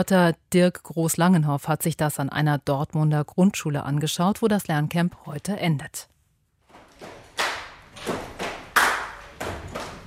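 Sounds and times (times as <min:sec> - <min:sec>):
speech: 0:00.0 - 0:06.1
hand clapping: 0:07.4 - 0:10.0.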